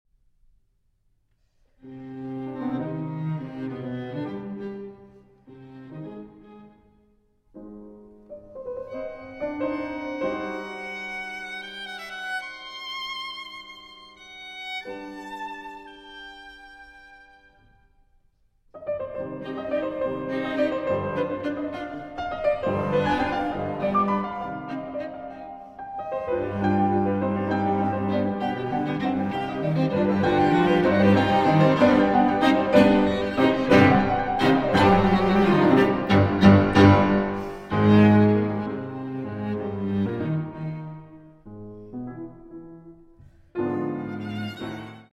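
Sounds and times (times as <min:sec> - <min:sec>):
piano trio playing: 0:07.6 - 0:16.8, 0:18.8 - 0:45.1.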